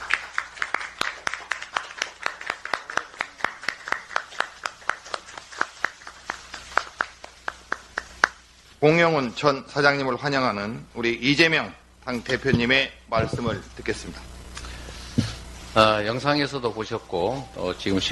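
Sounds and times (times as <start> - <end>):
audience applause welcoming a guest: 0.0 - 8.3
speech: 8.8 - 14.3, 15.7 - 18.1.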